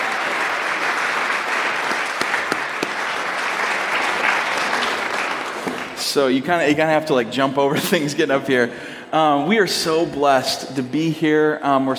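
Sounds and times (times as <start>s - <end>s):
audience applause welcoming a speaker at a church grand opening: 0.0s - 6.0s
speech: 6.0s - 11.9s.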